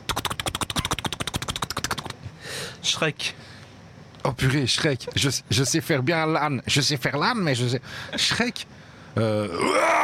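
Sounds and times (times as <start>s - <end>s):
voice imitating a helicopter: 0.1s - 2.2s
speech: 2.8s - 3.6s, 4.2s - 10.0s.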